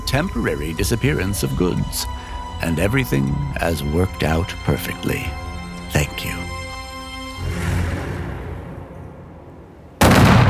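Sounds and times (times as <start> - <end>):
low rumbling background: 0.0 - 10.4
speech: 0.1 - 6.4
gunshots: 10.0 - 10.4.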